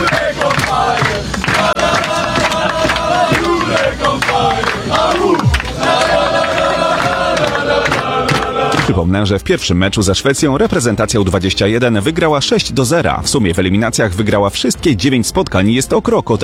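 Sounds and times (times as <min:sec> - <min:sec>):
football players shouting and cheering in victory celebration: 0:00.0 - 0:09.0
speech: 0:09.0 - 0:16.4.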